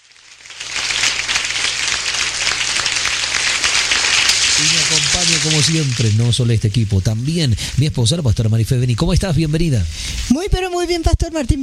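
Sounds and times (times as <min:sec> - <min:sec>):
audience applause: 0:00.4 - 0:06.3
speech: 0:04.8 - 0:11.6.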